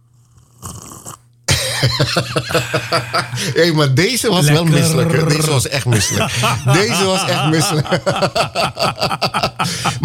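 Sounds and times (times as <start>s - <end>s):
person slurping a drink: 0.0s - 1.3s
laughter: 1.5s - 10.0s
speech: 1.8s - 10.0s.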